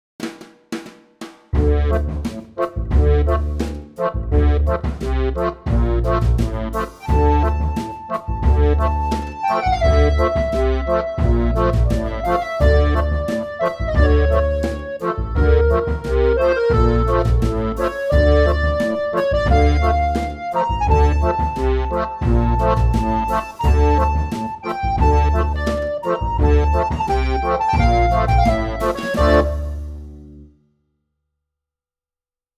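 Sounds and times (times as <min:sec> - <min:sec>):
accordion groove: 0:01.5 - 0:30.4.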